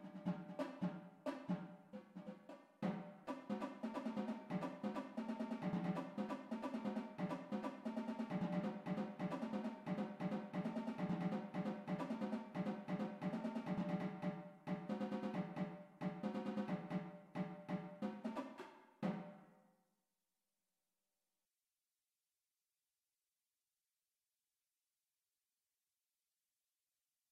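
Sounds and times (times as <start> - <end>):
tenor drums: 0.0 - 19.4.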